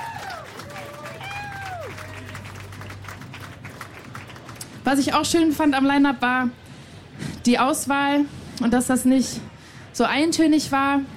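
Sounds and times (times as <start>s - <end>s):
audience applause: 0.0s - 4.8s
speech: 4.9s - 6.6s, 7.4s - 11.1s.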